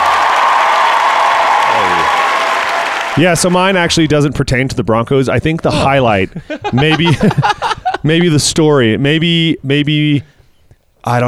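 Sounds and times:
applause and cheering: 0.0 - 3.8
speech: 3.2 - 10.4, 11.0 - 11.2
laughter: 5.7 - 8.3.

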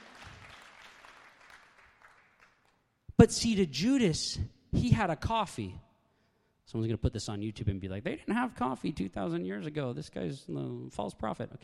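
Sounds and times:
single person clapping: 0.0 - 2.8
speech: 3.2 - 5.8, 6.7 - 11.6.

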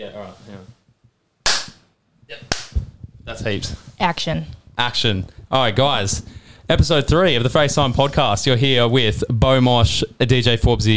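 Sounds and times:
speech: 0.0 - 0.8, 3.3 - 10.9
single hand clap into the mic: 1.4 - 1.8, 2.5 - 2.8.

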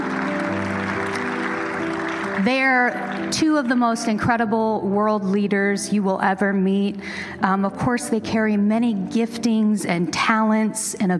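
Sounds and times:
round of applause: 0.0 - 3.3
speech: 2.4 - 11.1.

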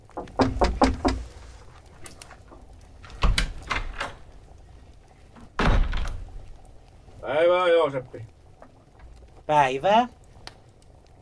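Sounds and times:
door opening with dull wooden thunks and clunks: 0.0 - 1.4, 3.0 - 4.3, 5.4 - 6.3
speech: 7.8 - 8.4, 9.5 - 10.2.

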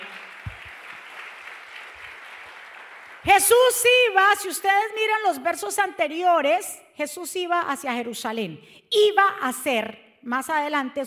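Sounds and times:
large crowd applauding loudly: 0.0 - 3.5
speech: 3.2 - 11.0.

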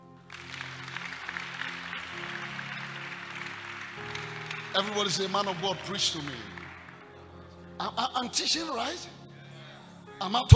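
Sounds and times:
audience clapping: 0.2 - 7.5
speech: 4.8 - 6.5, 7.8 - 9.2, 10.2 - 10.5.

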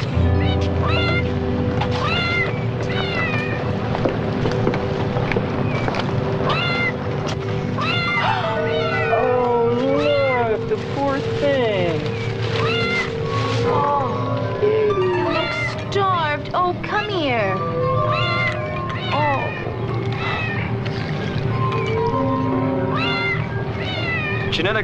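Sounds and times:
cat meowing, an escaped lab animal from a genetic laboratory: 0.0 - 3.7, 6.4 - 7.0, 7.8 - 10.6, 12.5 - 16.0, 17.5 - 20.8, 22.9 - 24.6
steady tonal background: 0.0 - 24.8.

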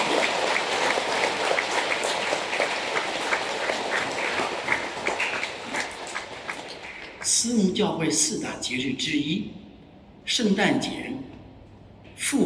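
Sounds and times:
audience applause: 0.0 - 7.3
speech: 7.4 - 9.6, 10.3 - 11.2.

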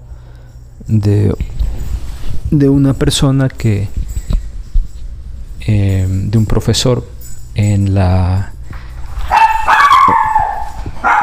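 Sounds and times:
speech: 0.8 - 1.6, 2.5 - 4.0, 5.6 - 8.5
small female dog barking: 9.3 - 11.2.

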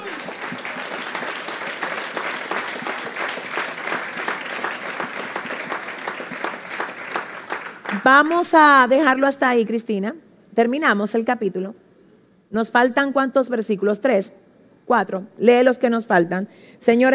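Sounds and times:
audience applause: 0.0 - 8.3
speech: 8.0 - 11.8, 12.5 - 17.1.

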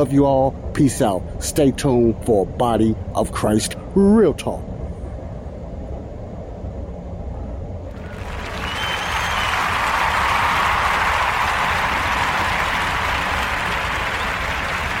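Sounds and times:
speech: 0.0 - 4.7
recorded crowd applause effect: 8.0 - 14.9.

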